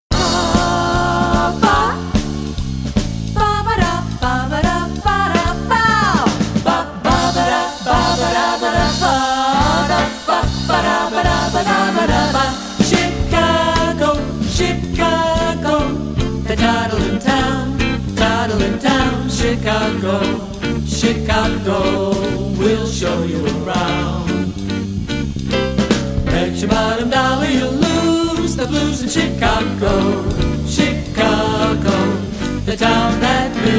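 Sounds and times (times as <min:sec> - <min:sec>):
Chicago swing music: 0:00.0 - 0:33.7.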